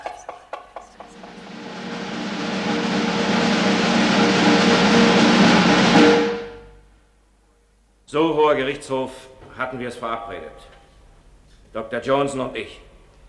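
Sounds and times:
rapid drumroll of knocking: 0:00.1 - 0:06.7
speech: 0:08.1 - 0:10.8, 0:11.7 - 0:12.9.

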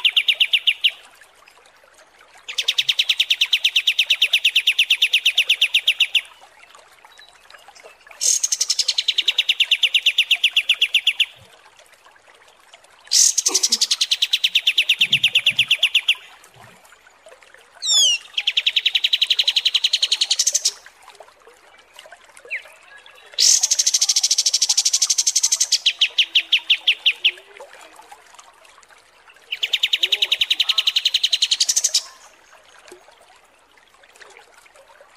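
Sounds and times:
pied triller song: 0:00.0 - 0:01.1, 0:02.5 - 0:11.4, 0:13.1 - 0:16.4, 0:17.8 - 0:20.8, 0:21.8 - 0:27.5, 0:29.3 - 0:32.3.

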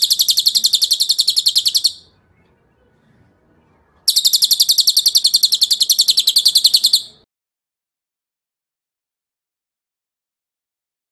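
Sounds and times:
bird song quick even trill: 0:00.0 - 0:02.1, 0:04.1 - 0:07.2.

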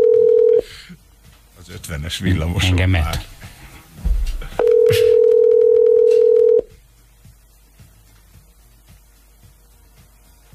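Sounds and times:
telephone dial tone: 0:00.0 - 0:00.6, 0:04.6 - 0:06.7
speech: 0:01.9 - 0:03.3.

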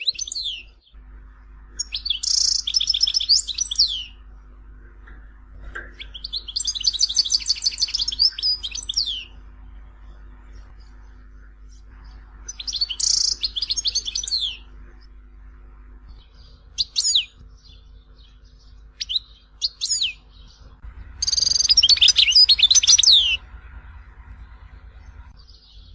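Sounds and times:
steady low hum: 0:00.0 - 0:25.9
European goldfinch twittering: 0:01.8 - 0:04.2, 0:06.0 - 0:09.4, 0:12.0 - 0:14.7, 0:16.4 - 0:20.6, 0:21.2 - 0:23.4.

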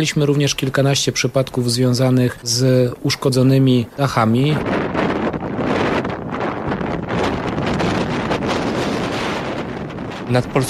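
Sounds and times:
speech: 0:00.0 - 0:05.0, 0:10.3 - 0:10.6
strong gusty foehn wind: 0:00.1 - 0:10.6.

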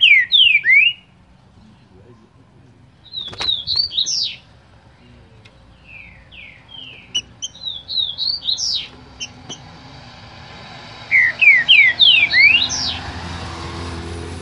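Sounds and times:
green-winged saltator singing slurred whistles: 0:00.0 - 0:01.1, 0:03.1 - 0:04.4, 0:05.8 - 0:09.4, 0:11.1 - 0:13.0.

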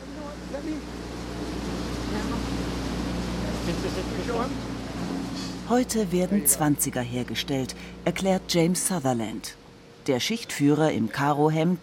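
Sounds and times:
printing presses rumbling in a banknote factory: 0:00.0 - 0:09.2
speech: 0:03.7 - 0:11.8.

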